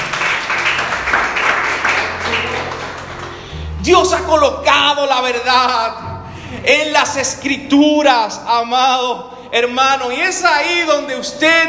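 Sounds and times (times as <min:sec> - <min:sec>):
audience applause: 0:00.0 - 0:03.6
speech: 0:03.9 - 0:11.6.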